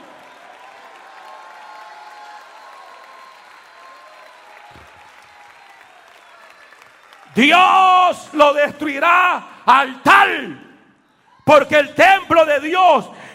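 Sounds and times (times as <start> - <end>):
audience applauding: 0.0 - 8.4
speech: 7.3 - 10.6, 11.5 - 13.3.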